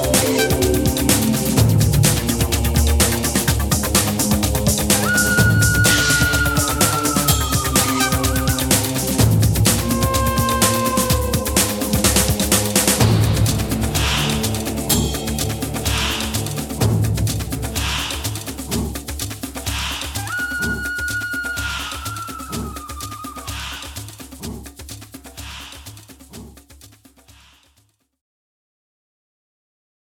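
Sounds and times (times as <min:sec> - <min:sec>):
jungle salsa music: 0:00.0 - 0:23.8.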